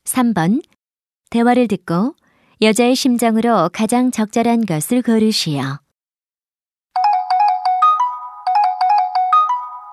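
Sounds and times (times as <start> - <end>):
speech: 0.2 - 0.7, 1.3 - 5.8
telephone ringing with a bright electronic melody: 7.0 - 9.9.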